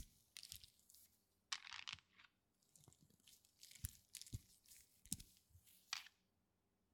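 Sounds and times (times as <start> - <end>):
power stone beads rubbing in ASMR massage: 0.0 - 1.2, 2.6 - 6.1.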